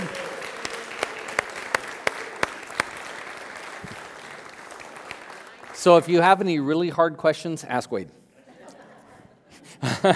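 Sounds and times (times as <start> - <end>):
round of applause: 0.0 - 6.2
speech: 5.8 - 8.2.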